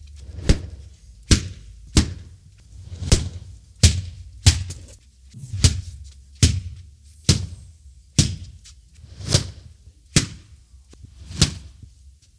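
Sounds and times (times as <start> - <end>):
slaps: 0.2 - 7.6, 8.2 - 10.6, 11.2 - 11.8
punches: 0.3 - 4.8, 5.5 - 7.6, 10.2 - 10.5, 11.2 - 11.8.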